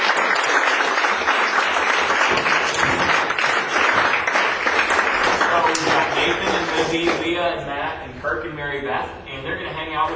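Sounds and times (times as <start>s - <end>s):
audience applause: 0.0s - 7.2s
speech: 6.9s - 10.1s.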